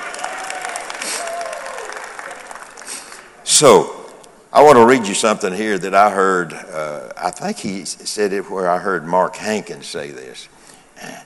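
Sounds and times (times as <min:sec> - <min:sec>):
audience applause: 0:00.0 - 0:03.4
speech: 0:03.6 - 0:11.2.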